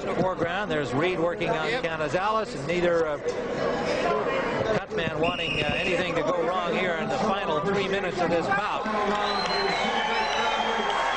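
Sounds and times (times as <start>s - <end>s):
speech: 0.0s - 10.3s
audience applauding in the sold-out poker room in the Sands: 8.8s - 11.1s.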